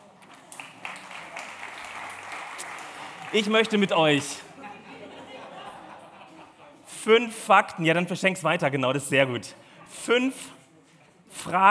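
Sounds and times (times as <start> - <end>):
crowd applauding: 0.0 - 4.4
speech: 3.3 - 4.5, 7.1 - 10.6, 11.4 - 11.6
laughter: 3.4 - 7.0.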